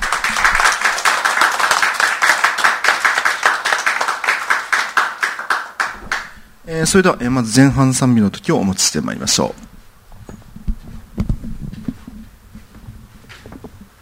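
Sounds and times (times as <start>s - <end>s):
people clapping in thanks: 0.0s - 6.4s
speech: 6.7s - 9.7s.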